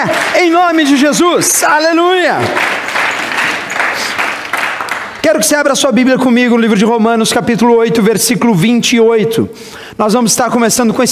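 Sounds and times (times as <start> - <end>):
audience applause: 0.0 - 5.2
speech: 0.6 - 3.2, 5.2 - 11.1.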